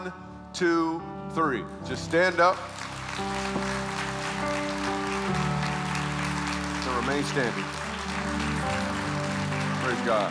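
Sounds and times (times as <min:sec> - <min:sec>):
speech: 0:00.0 - 0:03.8, 0:06.9 - 0:07.8, 0:09.9 - 0:10.2
audience applause: 0:02.3 - 0:10.2.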